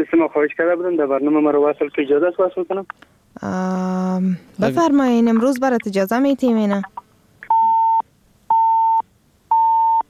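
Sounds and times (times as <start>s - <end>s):
speech: 0.0s - 7.0s
busy signal on a phone call failing to connect: 7.5s - 10.0s.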